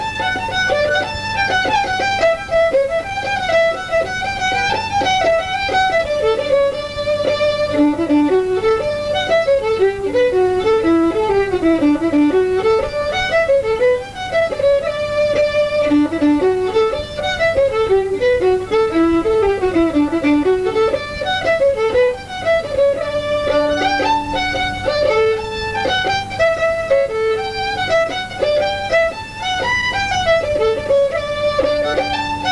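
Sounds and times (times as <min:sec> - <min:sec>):
fiddle tune: 0:00.0 - 0:32.5.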